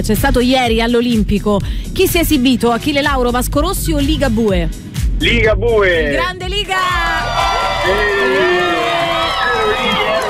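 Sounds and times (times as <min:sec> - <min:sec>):
speech: 0:00.0 - 0:10.2
crowd cheering and whooping: 0:06.8 - 0:10.2
faint clapping: 0:07.8 - 0:10.2.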